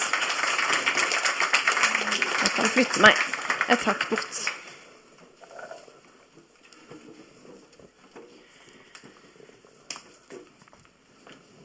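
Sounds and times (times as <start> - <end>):
audience applause: 0.0 - 4.8
speech: 2.6 - 4.6.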